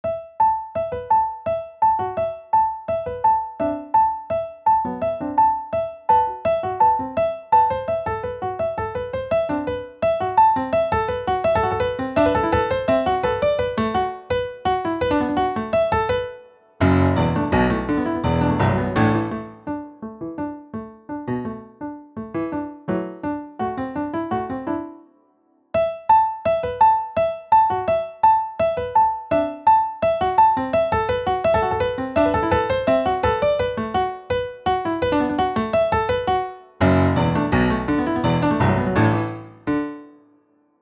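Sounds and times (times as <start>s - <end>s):
piano: 0.0s - 40.8s.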